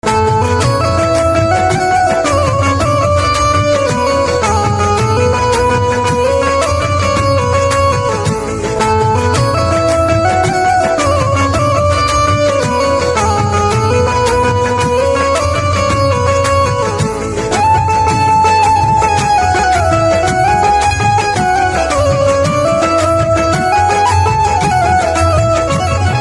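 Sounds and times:
banjo instrumental ringtone: 0.0 - 26.2.

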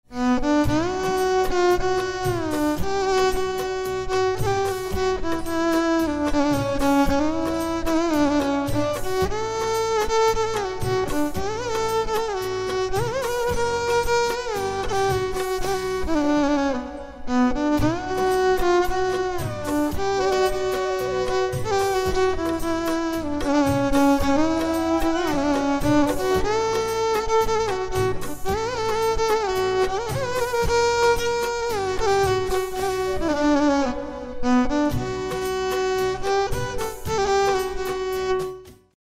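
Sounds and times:
violin: 0.0 - 39.0.

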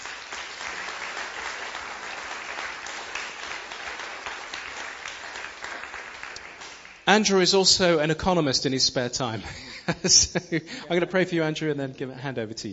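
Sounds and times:
audience applause welcoming a guest speaker at a talk: 0.0 - 7.0
speech: 7.1 - 12.7
laughter: 9.4 - 11.1.

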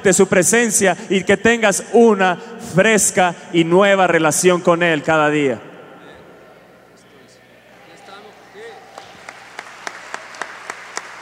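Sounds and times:
speech: 0.0 - 5.7
audience applause: 8.6 - 11.2.

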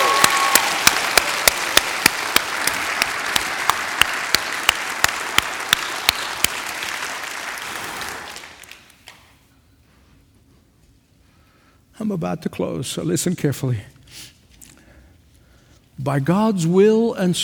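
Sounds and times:
audience clapping: 0.0 - 9.4
speech: 12.1 - 14.0, 16.0 - 17.4.

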